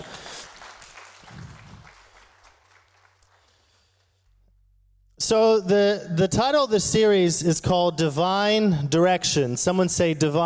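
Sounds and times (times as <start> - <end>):
audience clapping for the children: 0.0 - 4.2
speech: 5.3 - 10.4.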